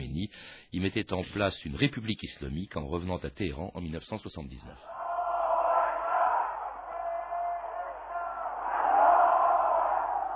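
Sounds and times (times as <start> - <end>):
speech: 0.2 - 5.0
huge crowd roaring and shouting: 4.9 - 10.3.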